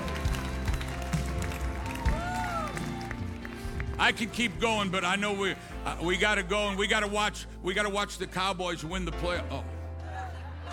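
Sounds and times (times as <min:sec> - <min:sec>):
audience clapping: 0:00.0 - 0:05.1
speech: 0:04.0 - 0:09.8.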